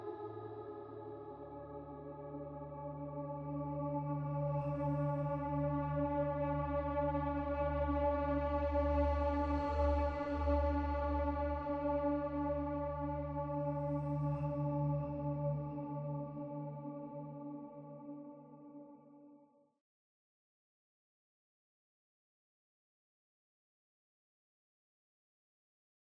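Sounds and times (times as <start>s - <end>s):
ambient music: 0.0s - 18.9s.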